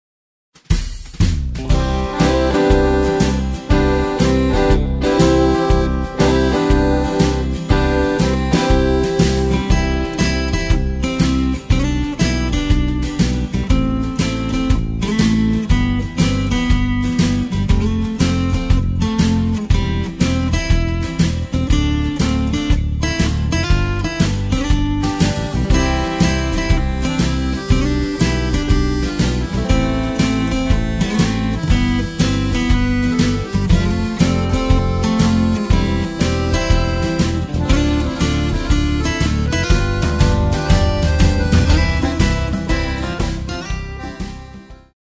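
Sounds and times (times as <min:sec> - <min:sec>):
instrumental music: 0:00.6 - 0:45.0.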